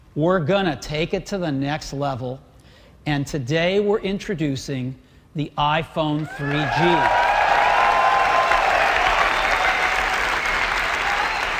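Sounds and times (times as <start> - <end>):
speech: 0.2 - 7.2
audience applause at product launch: 6.2 - 11.5
excited shouts and whoops: 6.2 - 11.5.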